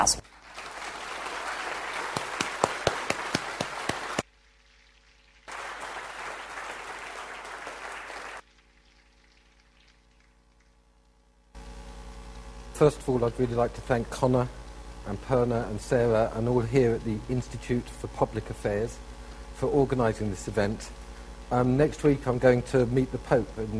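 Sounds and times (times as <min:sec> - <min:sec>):
speech: 0:00.0 - 0:00.3, 0:12.8 - 0:23.7
audience applause: 0:00.2 - 0:04.3, 0:05.5 - 0:08.4.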